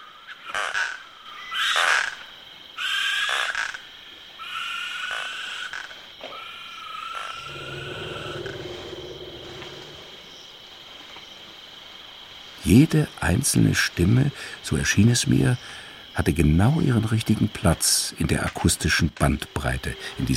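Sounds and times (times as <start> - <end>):
frogs and toads calling: 0.0 - 20.3
insects: 0.0 - 20.3
eagle owls hooting: 6.4 - 10.3
elephants: 6.4 - 10.4
spotted hyenas calling: 7.1 - 10.4
lions roaring: 7.2 - 10.5
speech: 12.7 - 20.3.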